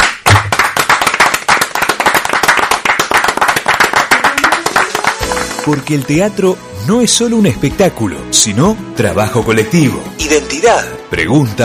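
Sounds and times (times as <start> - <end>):
applause: 0.0 - 6.4
speech: 5.6 - 11.6.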